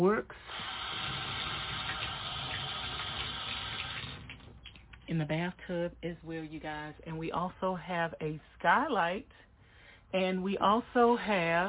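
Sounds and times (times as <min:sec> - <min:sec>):
speech: 0:00.0 - 0:00.6, 0:05.1 - 0:09.5, 0:10.1 - 0:11.6
water running into a toilet in a bathroom: 0:00.4 - 0:04.9.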